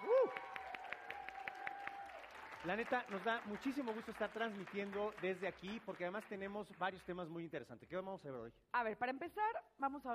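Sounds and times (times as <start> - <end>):
faint applause for the IEMS Iztapalapa 5 school: 0.0 - 5.8
speech: 2.6 - 10.1.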